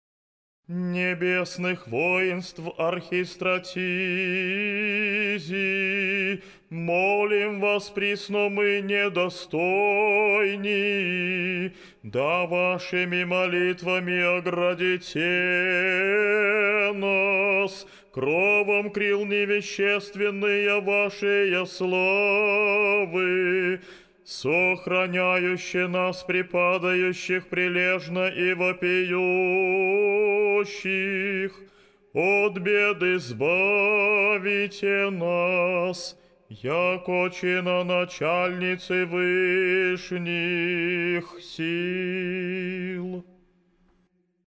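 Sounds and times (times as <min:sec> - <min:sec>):
Orthodox troparion chanted in tone four: 0:00.9 - 0:43.2.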